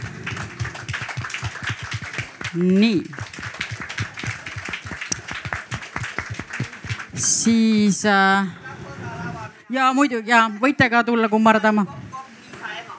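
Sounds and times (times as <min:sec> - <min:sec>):
audience applause for actors bowing: 0:00.0 - 0:07.4
speech: 0:02.5 - 0:03.4, 0:07.2 - 0:08.6, 0:09.7 - 0:12.0.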